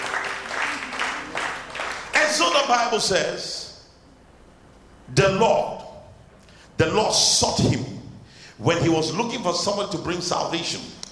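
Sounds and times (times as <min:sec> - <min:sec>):
crowd, audience clapping: 0:00.0 - 0:02.6
speech: 0:02.3 - 0:03.6, 0:05.1 - 0:05.8, 0:06.8 - 0:07.9, 0:08.6 - 0:11.1.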